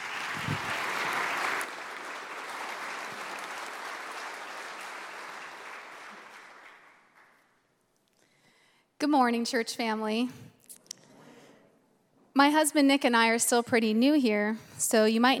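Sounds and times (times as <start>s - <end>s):
church congregation applauding to welcome a speaker: 0.0s - 7.8s
speech: 9.0s - 10.4s, 12.4s - 15.3s.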